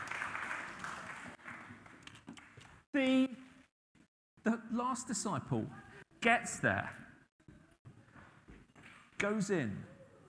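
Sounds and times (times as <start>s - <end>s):
audience applause: 0.0s - 2.1s
speech: 3.0s - 3.4s, 4.8s - 7.0s, 9.2s - 9.9s.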